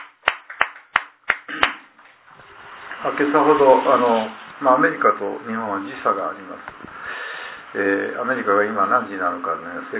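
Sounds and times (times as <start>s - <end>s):
hand claps: 0.0s - 2.2s
speech: 3.0s - 7.0s, 7.7s - 9.9s.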